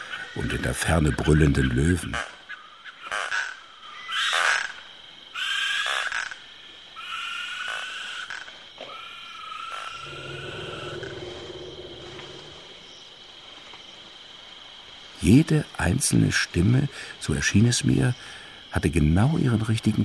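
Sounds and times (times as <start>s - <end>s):
African frogs croaking at night: 0.0s - 20.0s
African insects buzzing at night: 0.0s - 20.0s
speech: 0.4s - 2.3s, 15.2s - 20.0s
owl low hooting: 9.8s - 12.9s.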